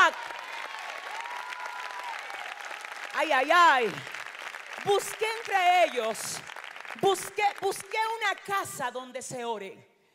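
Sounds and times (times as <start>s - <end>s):
audience applause: 0.0s - 7.9s
speech: 3.2s - 4.1s, 4.8s - 9.9s.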